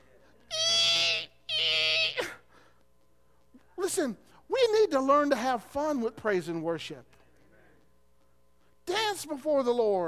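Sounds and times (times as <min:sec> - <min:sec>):
voice imitating a rusty squeak: 0:00.5 - 0:02.4
speech: 0:03.9 - 0:07.2, 0:09.2 - 0:10.0.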